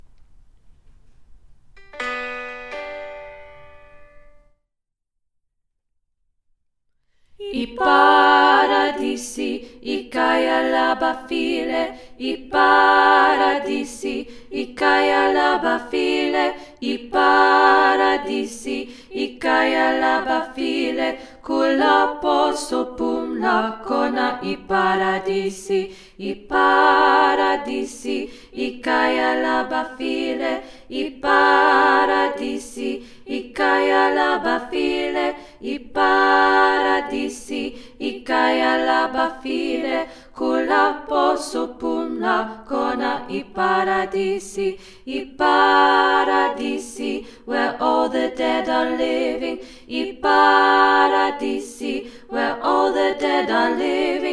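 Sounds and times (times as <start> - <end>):
SATB four-part choir singing: 7.4 - 54.3.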